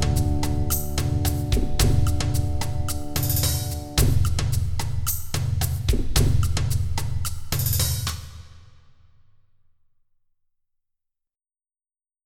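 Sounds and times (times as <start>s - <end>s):
rhythm: 0.0s - 8.5s.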